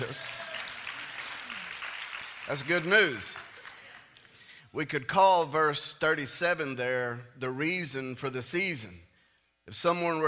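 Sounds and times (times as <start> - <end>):
audience applause: 0.0 - 4.4
speech: 2.5 - 3.4, 4.7 - 9.0, 9.7 - 10.2.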